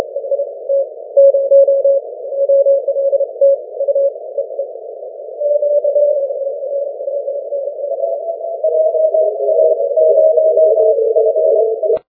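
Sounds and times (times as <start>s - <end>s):
20m continuous wave radio signal: 0.0s - 12.1s.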